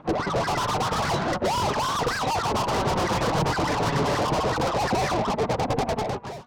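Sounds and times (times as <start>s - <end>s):
DJ scratching effect: 0.1s - 6.4s.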